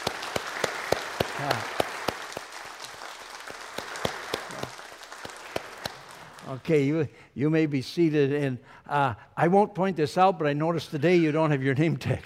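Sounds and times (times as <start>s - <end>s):
audience applause: 0.0s - 6.8s
speech: 1.4s - 1.8s, 6.5s - 12.2s.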